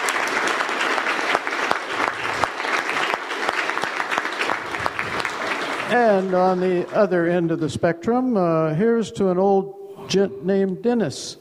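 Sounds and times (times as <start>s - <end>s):
applause from a group of people: 0.0s - 7.5s
speech: 5.9s - 11.4s.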